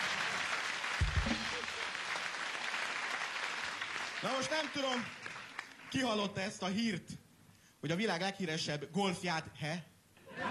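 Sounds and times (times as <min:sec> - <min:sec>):
audience applause: 0:00.0 - 0:06.0
speech: 0:04.2 - 0:05.2, 0:05.9 - 0:07.2, 0:07.8 - 0:10.4.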